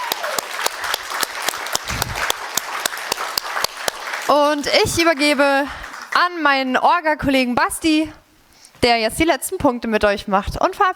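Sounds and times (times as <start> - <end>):
applause: 0.0 - 6.5
speech: 4.3 - 8.2, 8.8 - 10.9.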